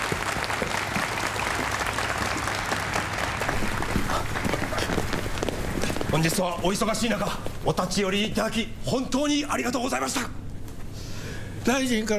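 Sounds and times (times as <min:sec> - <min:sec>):
audience applause: 0:00.0 - 0:06.3
speech: 0:06.2 - 0:10.4, 0:11.6 - 0:12.1.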